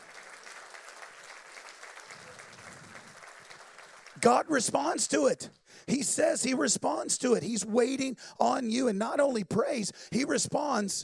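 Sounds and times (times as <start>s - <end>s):
audience applause: 0.0s - 4.6s
speech: 4.2s - 11.0s.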